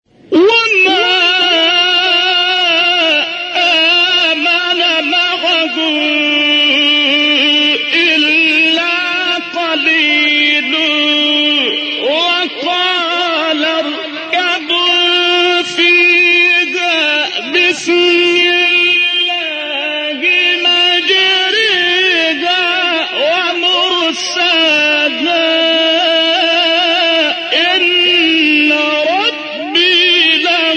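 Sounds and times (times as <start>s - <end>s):
person reciting a Quran chapter: 0.1s - 30.7s.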